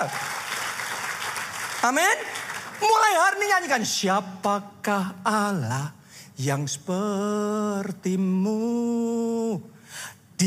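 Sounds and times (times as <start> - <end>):
speech: 0.0 - 0.3, 1.8 - 10.4
applause: 0.0 - 3.3.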